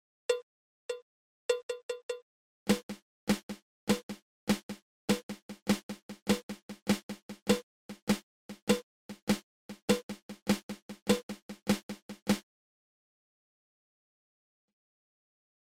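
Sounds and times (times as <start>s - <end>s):
Swiss Army Triplet drum rudiment: 2.7s - 12.4s.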